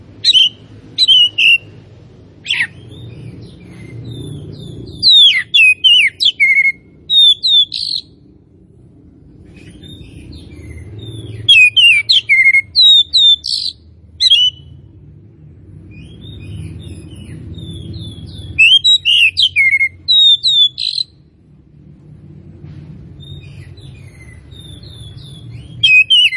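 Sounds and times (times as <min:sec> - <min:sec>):
low hum: 0:00.0 - 0:20.1, 0:21.0 - 0:26.3
Oriental magpie-robin whistles and song: 0:00.2 - 0:01.7, 0:02.4 - 0:08.1, 0:09.6 - 0:14.7, 0:15.9 - 0:21.2, 0:23.2 - 0:26.3.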